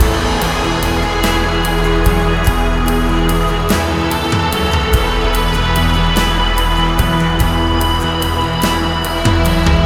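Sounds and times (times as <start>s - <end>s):
rock music: 0.0s - 9.8s.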